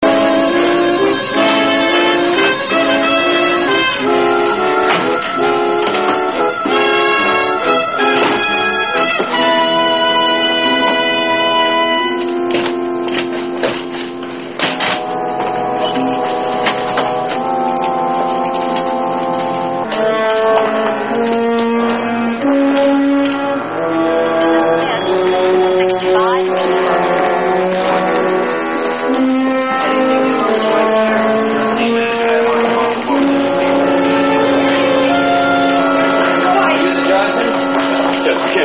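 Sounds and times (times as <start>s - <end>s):
dramatic music: 0.0s - 38.6s.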